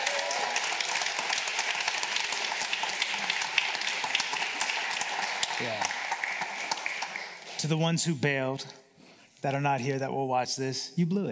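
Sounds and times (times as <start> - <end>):
crowd applauding: 0.0 - 7.8
speech: 7.6 - 8.8, 9.4 - 11.2.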